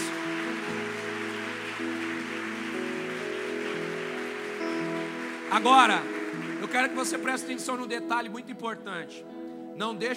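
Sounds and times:
audience applauding: 0:00.0 - 0:08.0
speech: 0:05.5 - 0:10.1.

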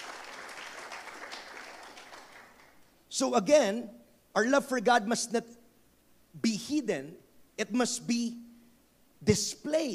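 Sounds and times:
church congregation applauding during a worship service: 0:00.0 - 0:02.9
speech: 0:03.2 - 0:05.6, 0:06.3 - 0:08.4, 0:09.2 - 0:09.9.

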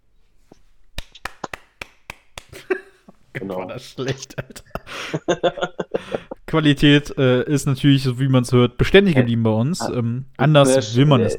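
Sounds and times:
hand clapping: 0:01.0 - 0:02.7
laughter: 0:02.5 - 0:06.5
speech: 0:03.4 - 0:11.3.

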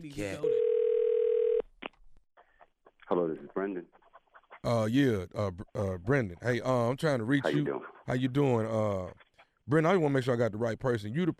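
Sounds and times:
speech: 0:00.0 - 0:00.6, 0:03.1 - 0:04.0, 0:04.6 - 0:11.3
telephone dial tone: 0:00.5 - 0:01.6.

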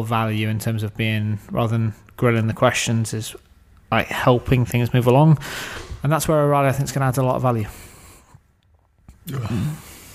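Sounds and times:
speech: 0:00.0 - 0:07.9, 0:09.3 - 0:09.9
big yawn: 0:09.2 - 0:10.1.

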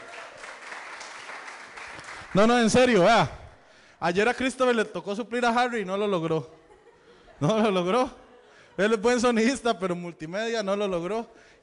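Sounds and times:
audience applause: 0:00.0 - 0:02.6
speech: 0:02.3 - 0:03.4, 0:04.0 - 0:06.6, 0:07.4 - 0:08.2, 0:08.8 - 0:11.6.

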